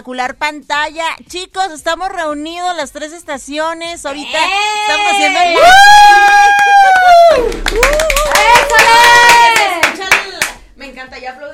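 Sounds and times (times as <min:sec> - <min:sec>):
speech: 0:00.0 - 0:09.8
excited voices: 0:04.1 - 0:10.1
hands clapping: 0:06.4 - 0:10.6.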